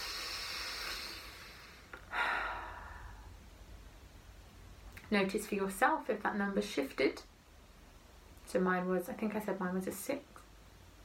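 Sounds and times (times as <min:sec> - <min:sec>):
deep breathing in through the nose and out through the mouth: 0:00.0 - 0:03.4
speech: 0:05.1 - 0:07.3, 0:08.5 - 0:10.3.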